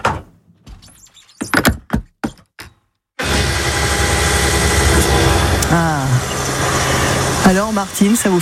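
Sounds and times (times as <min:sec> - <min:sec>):
petrol pump filling a car: 0:03.2 - 0:08.3
speech: 0:07.5 - 0:08.3.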